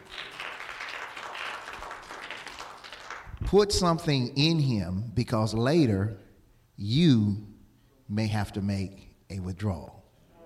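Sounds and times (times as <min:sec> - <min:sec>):
audience clapping hands: 0:00.0 - 0:03.4
speech: 0:03.5 - 0:06.2, 0:06.8 - 0:07.5, 0:08.1 - 0:10.0.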